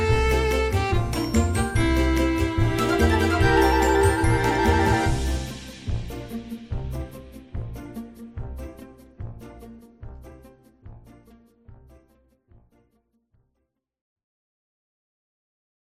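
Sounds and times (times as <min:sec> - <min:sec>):
orchestral arrangement: 0:00.0 - 0:10.4.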